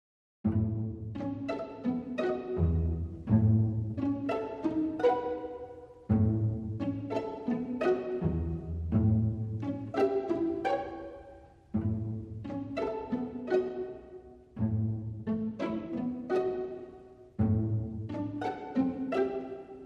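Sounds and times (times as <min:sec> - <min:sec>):
strings: 0:00.4 - 0:19.8.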